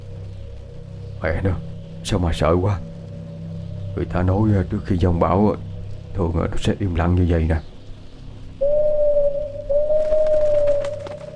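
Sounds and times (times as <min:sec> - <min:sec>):
speech: 0:01.2 - 0:02.9, 0:04.0 - 0:07.7
large bird crying out: 0:08.6 - 0:11.3.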